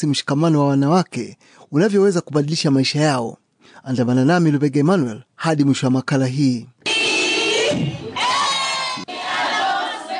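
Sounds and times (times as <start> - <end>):
speech: 0.0 - 6.7, 7.7 - 8.0
women ululating in celebration after receiving land title deeds: 7.1 - 10.1.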